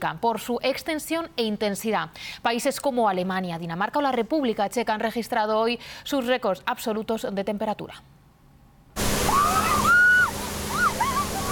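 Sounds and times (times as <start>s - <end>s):
speech: 0.0s - 8.2s
German police water cannon spraying water: 9.0s - 11.5s.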